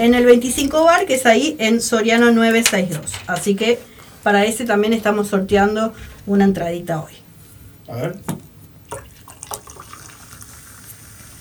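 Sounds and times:
speech: 0:00.0 - 0:07.2, 0:07.9 - 0:09.1
drink pouring into a glass: 0:08.9 - 0:11.3.

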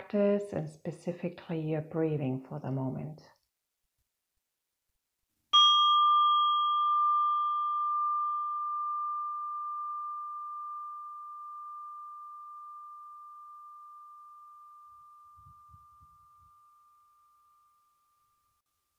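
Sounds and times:
speech: 0:00.1 - 0:03.4
meditation bell ringing: 0:05.6 - 0:18.6.

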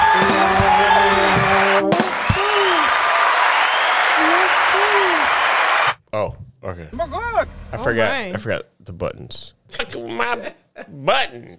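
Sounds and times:
live studio audience applauding: 0:00.0 - 0:06.0
speech: 0:07.9 - 0:11.5.

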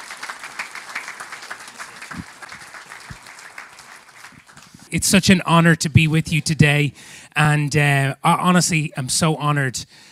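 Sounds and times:
audience applause welcoming a speaker to the stage: 0:00.0 - 0:04.9
speech: 0:04.9 - 0:10.1.

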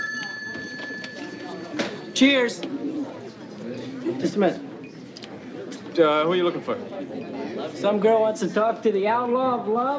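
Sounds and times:
telephone ringing: 0:00.0 - 0:02.7
speech: 0:02.2 - 0:02.8, 0:04.2 - 0:04.7, 0:06.0 - 0:09.9.

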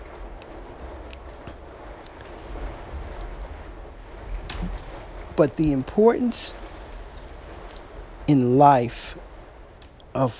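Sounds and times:
rain battering against a window: 0:00.0 - 0:10.3
speech: 0:05.4 - 0:06.7, 0:08.3 - 0:09.2, 0:10.2 - 0:10.3.

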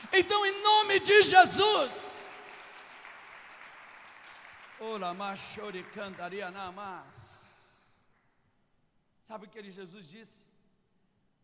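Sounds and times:
crowd applauding: 0:00.0 - 0:07.2
speech: 0:00.1 - 0:02.0, 0:04.8 - 0:07.4, 0:09.3 - 0:10.5.

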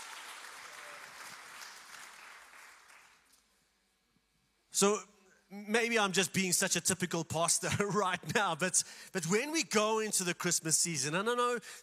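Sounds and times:
audience applause: 0:00.0 - 0:03.3
speech: 0:04.8 - 0:11.8.

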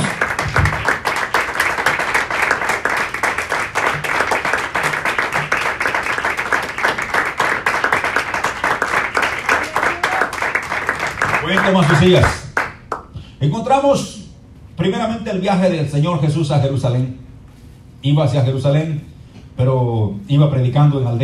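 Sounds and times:
audience applause: 0:00.0 - 0:12.8
speech: 0:12.0 - 0:12.4, 0:13.4 - 0:14.1, 0:14.8 - 0:17.2, 0:18.0 - 0:21.2.

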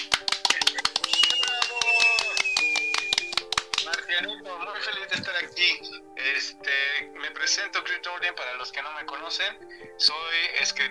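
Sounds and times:
dense irregular hand claps: 0:00.0 - 0:04.4
speech: 0:04.3 - 0:10.8.

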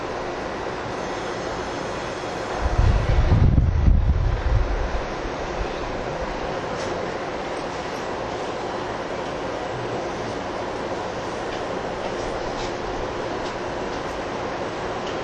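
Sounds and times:
rumble inside a TWR 70-000 series train on the Saikyo Line: 0:00.0 - 0:15.2
deep heavy roar: 0:02.5 - 0:06.5.

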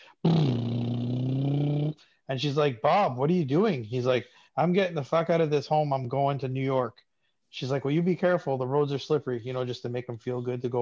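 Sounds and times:
man's voice imitating a car engine: 0:00.2 - 0:01.9
speech: 0:02.3 - 0:10.8.

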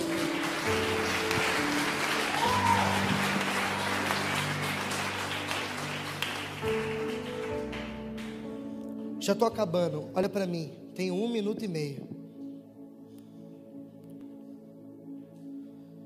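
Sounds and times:
audience applause: 0:00.0 - 0:08.4
speech: 0:09.3 - 0:12.1.

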